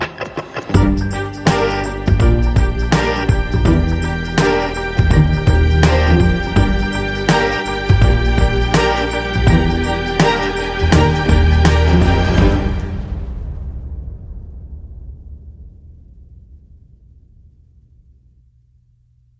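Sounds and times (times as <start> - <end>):
dark classical pop music: 0.0 - 13.1.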